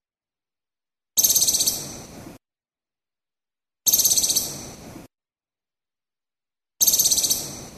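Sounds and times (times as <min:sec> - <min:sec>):
Moluccan woodcock giving a harsh pulsed rattle call in Maluku: 0:01.2 - 0:02.0, 0:03.9 - 0:04.7, 0:06.8 - 0:07.6.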